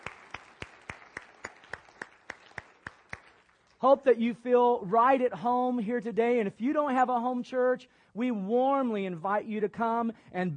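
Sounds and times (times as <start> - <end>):
church congregation clapping: 0.0 - 4.2
speech: 3.8 - 10.5.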